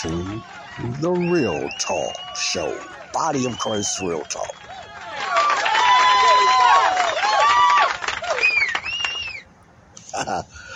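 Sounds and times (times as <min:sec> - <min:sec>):
speech: 0:00.0 - 0:04.8, 0:10.2 - 0:10.6
loud crowd cheering and whooping: 0:00.0 - 0:09.4.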